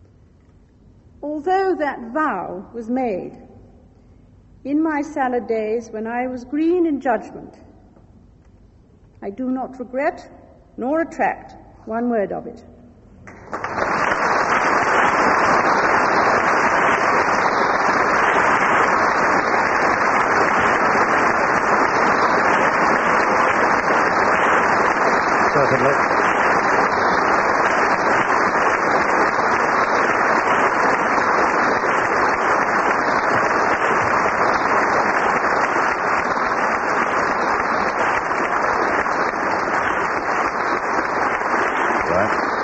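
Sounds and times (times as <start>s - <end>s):
speech: 1.2s - 3.5s, 4.6s - 7.7s, 9.2s - 12.7s
audience of 800 guests applauding a speech: 13.3s - 42.6s.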